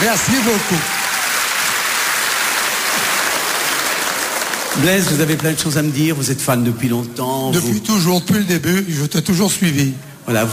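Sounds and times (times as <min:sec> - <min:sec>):
speech: 0:00.0 - 0:01.0, 0:04.8 - 0:10.5
audience applause: 0:00.0 - 0:05.8.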